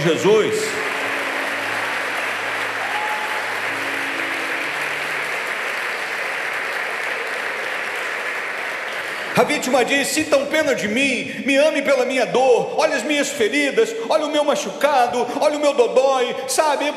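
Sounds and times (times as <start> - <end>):
speech: 0.0 - 0.8, 9.4 - 16.9
congregation applauding during a church service: 0.0 - 10.6.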